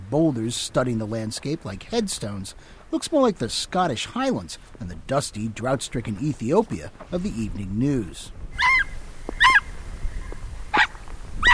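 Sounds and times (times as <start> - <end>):
speech: 0.1 - 8.7
Ethiopian wolf yelping: 8.5 - 9.8, 10.7 - 11.5.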